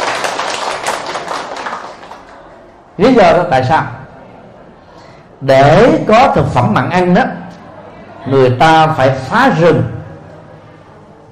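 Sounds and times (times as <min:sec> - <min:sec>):
crowd clapping: 0:00.0 - 0:02.8
speech: 0:03.0 - 0:04.0, 0:05.4 - 0:07.4, 0:08.2 - 0:09.9.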